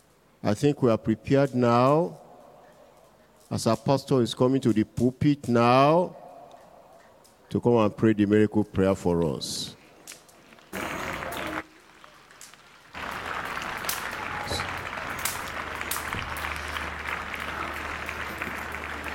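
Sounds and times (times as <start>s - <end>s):
speech: 0.5s - 2.2s, 3.5s - 6.2s, 7.5s - 9.8s
audience clapping: 10.4s - 19.1s.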